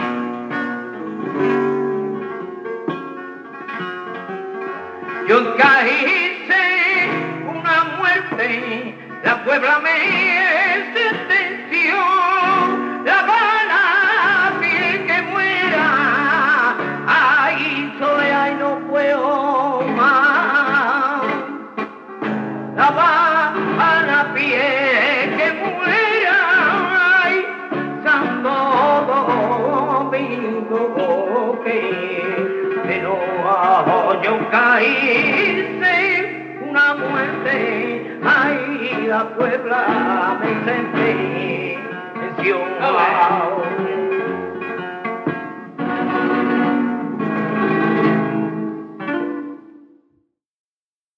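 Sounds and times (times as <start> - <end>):
flamenco music: 0.0 - 50.4.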